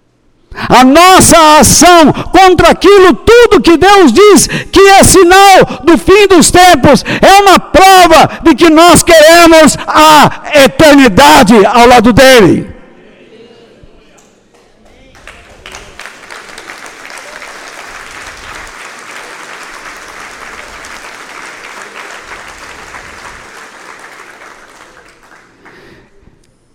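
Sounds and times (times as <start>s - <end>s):
speech: 0.7s - 12.7s
crowd applauding: 14.6s - 26.2s.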